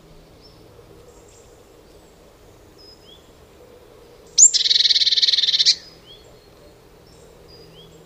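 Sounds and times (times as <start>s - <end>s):
Eurasian blue tit Cyanistes caeruleus churring call: 4.3s - 6.2s.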